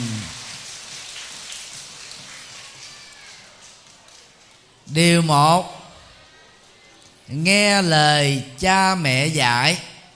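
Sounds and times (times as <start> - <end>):
children applauding: 0.0 - 4.7
speech: 4.9 - 5.8, 7.3 - 9.9.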